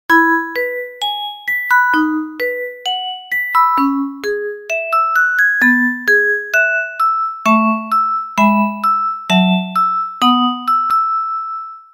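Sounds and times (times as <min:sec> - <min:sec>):
music box: 0:00.1 - 0:11.9.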